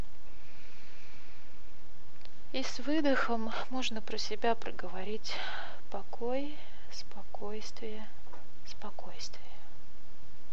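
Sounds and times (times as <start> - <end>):
deep inhale during a guided breathing exercise: 0.2 - 1.7, 5.3 - 5.8
speech: 2.5 - 9.6.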